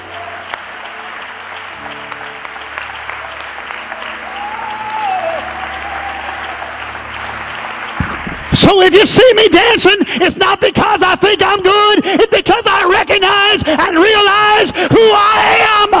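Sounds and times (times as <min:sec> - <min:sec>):
crowd, audience applauding: 0:00.0 - 0:10.2
speech: 0:08.6 - 0:15.9.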